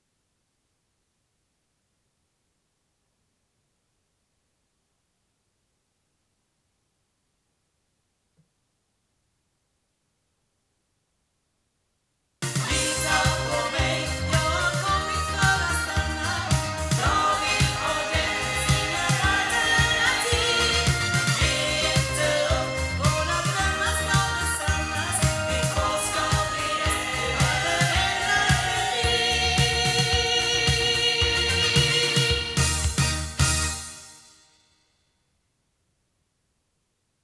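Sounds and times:
loudspeakers: 12.5s - 33.5s.

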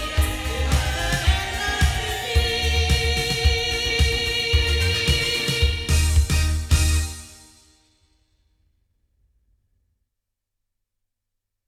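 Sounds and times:
sound from loudspeakers: 0.0s - 7.4s.

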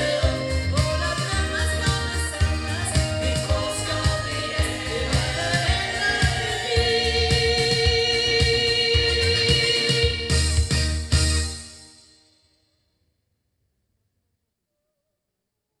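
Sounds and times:
sound through ball loudspeakers: 0.0s - 11.6s.

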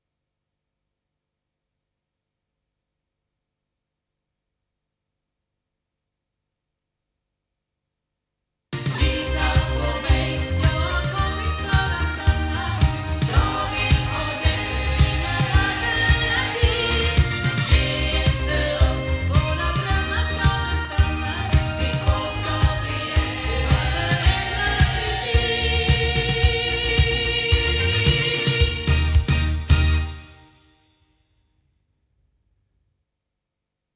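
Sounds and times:
loudspeakers: 8.9s - 30.0s.

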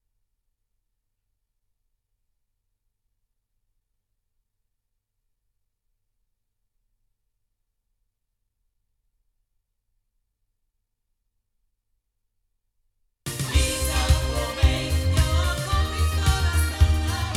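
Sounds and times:
sound from loudspeakers recorded with a Rode NTK microphone: 13.3s - 17.3s.

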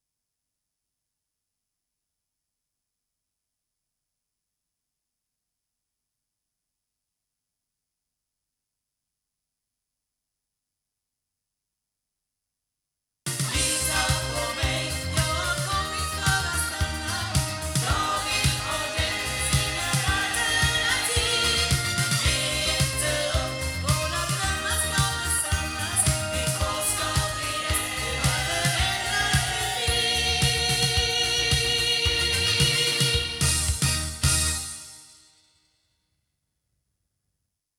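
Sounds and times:
fake loudspeaker sound through Shure Beta58A microphone: 13.5s - 33.8s.

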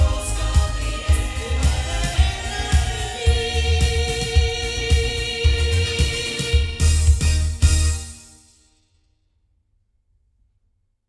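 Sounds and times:
sound from omnidirectional loudspeakers: 0.0s - 8.3s.

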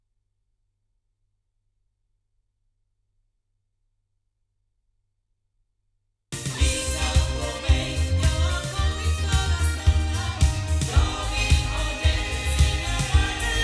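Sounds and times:
loudspeakers: 6.4s - 13.6s.

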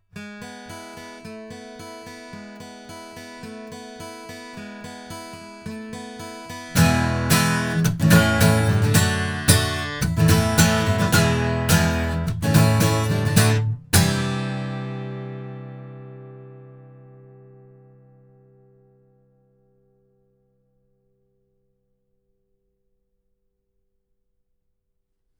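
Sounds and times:
guitar: 0.0s - 22.8s.

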